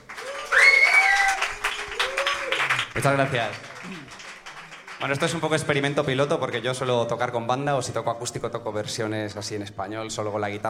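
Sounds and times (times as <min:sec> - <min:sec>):
audience applause: 0:00.0 - 0:06.9
speech: 0:03.0 - 0:04.2, 0:05.0 - 0:10.6.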